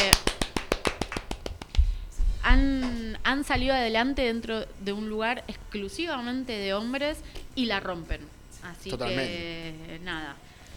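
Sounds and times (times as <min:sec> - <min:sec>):
hand clapping: 0:00.0 - 0:02.0
speech: 0:02.5 - 0:10.5.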